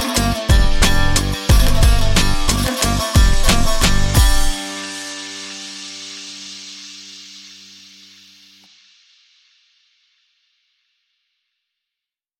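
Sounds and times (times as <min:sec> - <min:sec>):
Arabic guitar music at 90 bpm: 0:00.0 - 0:06.6.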